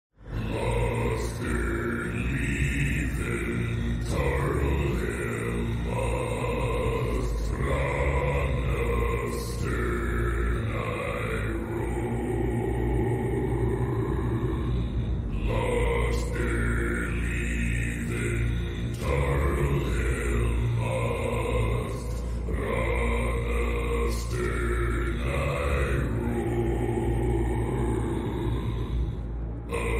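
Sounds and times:
hell priest chanting: 0.3 - 29.9.

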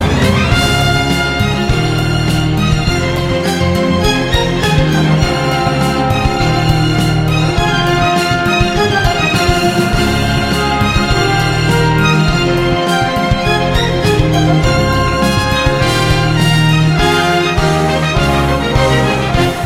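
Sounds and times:
dynamic violins: 0.0 - 19.6.

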